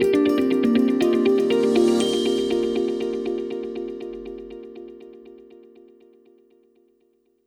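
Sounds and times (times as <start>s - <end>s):
corporate transition music: 0.1s - 5.6s.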